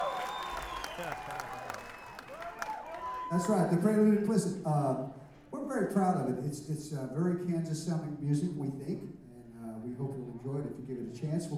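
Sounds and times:
crowd applauding and cheering: 0.0 - 3.8
speech: 3.3 - 9.2, 10.0 - 11.5.

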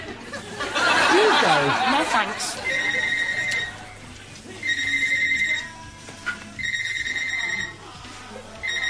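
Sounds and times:
laughter: 0.0 - 3.8
speech: 1.4 - 2.9
telephone ringing: 2.5 - 4.0, 4.6 - 5.8, 6.6 - 8.0, 8.6 - 8.8.

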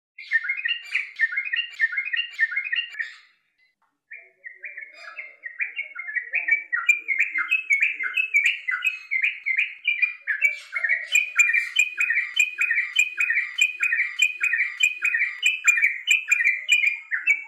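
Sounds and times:
bird chirping: 0.2 - 17.4.

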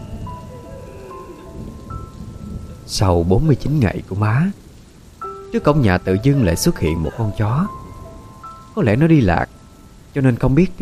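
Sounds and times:
thunder clap: 0.0 - 4.8
heavy rain on a tin roof: 0.0 - 10.8
speech: 2.9 - 4.6, 5.5 - 7.8, 8.8 - 10.8.

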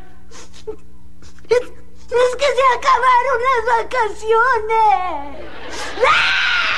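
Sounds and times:
speech: 0.7 - 0.9, 1.5 - 6.4
girl crying and wailing: 5.8 - 6.7.

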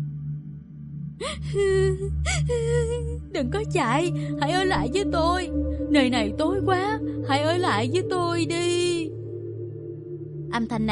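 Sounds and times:
woman crying mournfully: 1.2 - 5.0
speech: 1.2 - 9.2, 10.6 - 10.9
low steady hum: 1.2 - 10.9.

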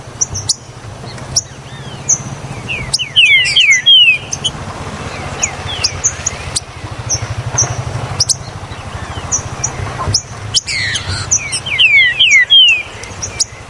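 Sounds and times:
Green-winged saltator song of loud down-slurred whistles: 0.2 - 0.7, 1.3 - 13.6.

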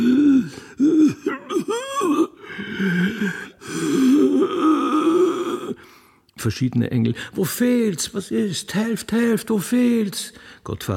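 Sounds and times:
old man groaning and moaning inarticulately: 0.0 - 5.8
speech: 6.4 - 10.9.

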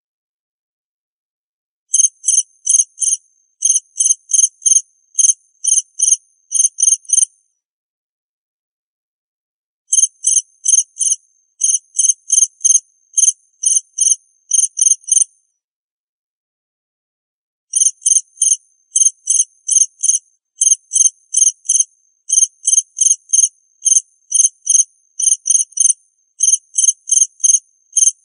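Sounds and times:
cricket chirping: 1.9 - 7.4, 9.9 - 15.3, 17.7 - 28.2.

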